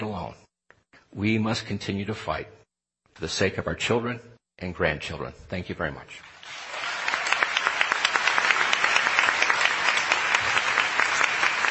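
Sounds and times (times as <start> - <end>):
speech: 1.1 - 2.6, 3.2 - 6.6
audience applause for panel: 6.3 - 11.7.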